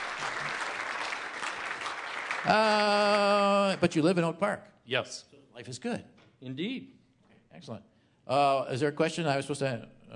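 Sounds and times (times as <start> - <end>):
audience applause: 0.0 - 4.1
speech: 2.4 - 10.1.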